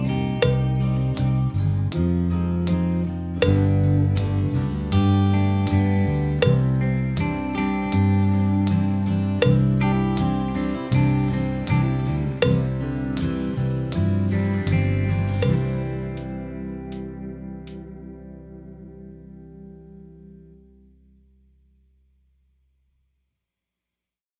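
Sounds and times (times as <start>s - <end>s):
drum kit: 0.0s - 17.9s.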